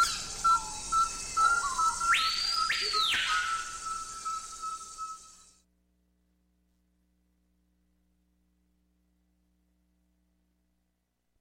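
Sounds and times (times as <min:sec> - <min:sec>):
sounds of the Amazon: 0:00.0 - 0:05.5.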